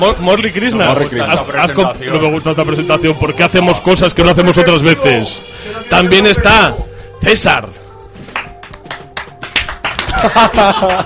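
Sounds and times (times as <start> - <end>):
speech: 0.0 - 7.8, 10.2 - 11.0
sparse hand claps: 8.3 - 11.0
laughter: 9.9 - 11.0.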